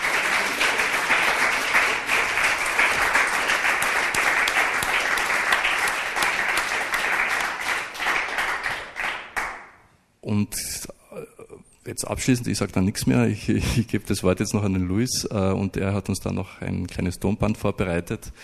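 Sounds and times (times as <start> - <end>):
audience applause: 0.0 - 9.6
speech: 11.9 - 18.4.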